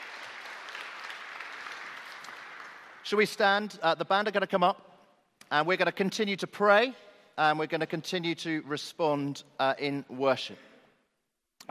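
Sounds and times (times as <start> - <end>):
audience applause: 0.0 - 3.1
speech: 3.1 - 4.9, 5.5 - 10.7.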